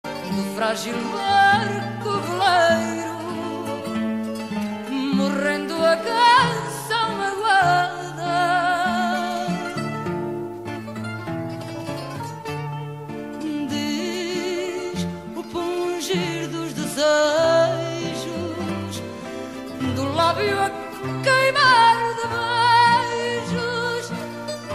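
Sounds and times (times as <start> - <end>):
Portuguese fado song: 0.0 - 24.7.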